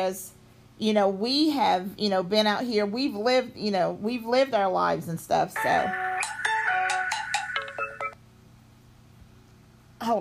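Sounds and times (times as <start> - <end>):
speech: 0.0 - 6.3
phone call ending tone: 5.6 - 8.2.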